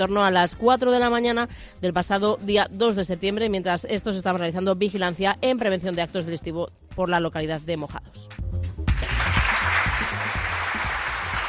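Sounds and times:
speech: 0.0 - 8.3
crowd applause sound effect: 8.9 - 11.4.

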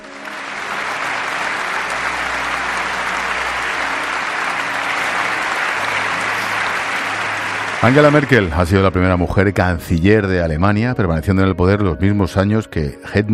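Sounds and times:
long standing ovation in the Bundestag: 0.0 - 9.2
speech: 7.8 - 13.3.

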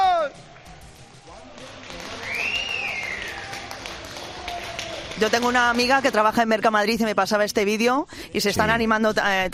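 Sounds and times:
workers applauding and cheering: 0.0 - 6.5
speech: 5.2 - 9.5.

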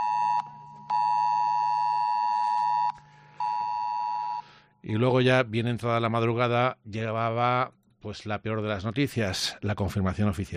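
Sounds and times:
mobile phone emergency alert tone: 0.0 - 4.5
speech: 4.9 - 10.5.

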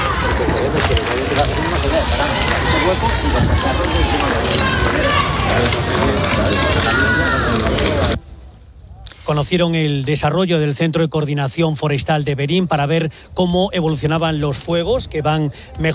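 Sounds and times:
crowd of wildfire-affected residents cheering and shouting in Verín: 0.0 - 8.2
speech: 1.4 - 5.8, 9.3 - 15.9.

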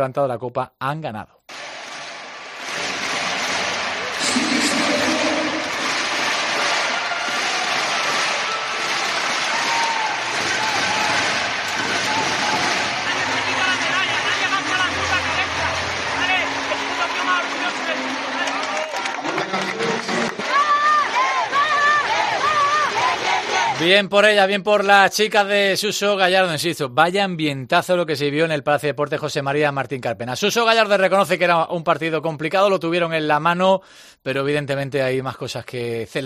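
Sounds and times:
speech: 0.0 - 1.4, 23.8 - 36.2
large indoor crowd roaring and cheering: 1.5 - 24.0
scattered applause: 1.5 - 24.5.

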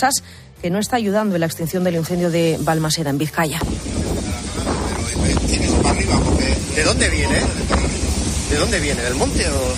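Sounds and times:
speech: 0.0 - 4.0, 5.5 - 7.9, 8.5 - 9.7
strong wind gusts: 3.6 - 9.7.

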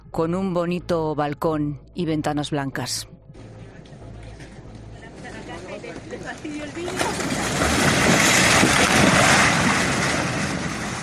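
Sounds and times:
speech: 0.1 - 3.2
house collapsing, swallowed by lava flow: 6.5 - 11.0.

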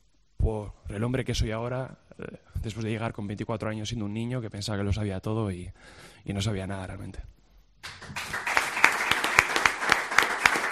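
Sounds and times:
speech: 0.5 - 8.3
audience applause: 7.8 - 10.7.

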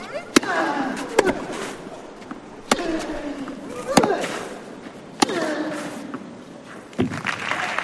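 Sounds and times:
tennis match at Philippe Chatrier court: 0.0 - 7.8
light applause: 7.0 - 7.8.

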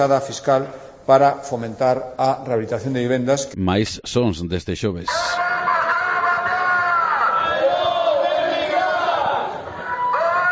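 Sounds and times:
speech: 0.0 - 5.4
crowd chanting at a general strike protest in As Pontes: 5.4 - 10.5.

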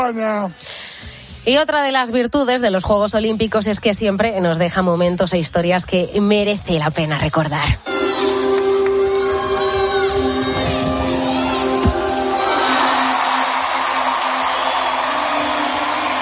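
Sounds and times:
speech: 0.0 - 8.3
stadium crowd ovation at the Olympic Games: 7.9 - 16.2.

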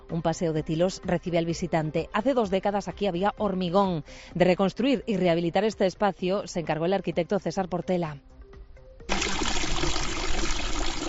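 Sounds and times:
speech: 0.1 - 8.4
spring water flowing: 9.1 - 11.0.

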